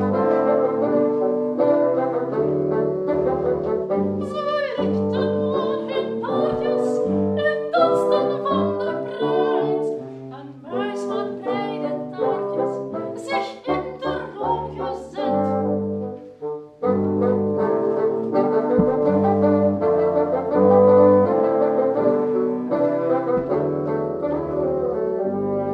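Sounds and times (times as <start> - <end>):
bassoon playing: 0.0 - 25.7.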